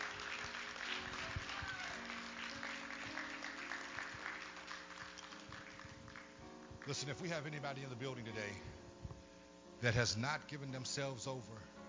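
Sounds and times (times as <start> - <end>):
audience hand clapping applause: 0.0 - 6.4
speech: 6.9 - 8.8, 9.8 - 11.8.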